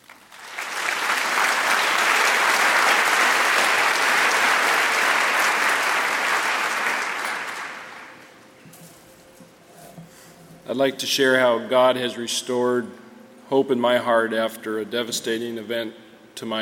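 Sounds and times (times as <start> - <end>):
audience applause welcoming a speaker: 0.0 - 8.2
speech: 10.8 - 16.5.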